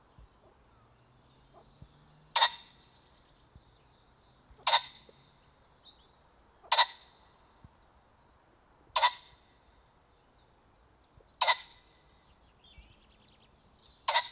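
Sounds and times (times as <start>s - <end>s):
Phasianus colchicus pheasant: 0.0s - 14.3s.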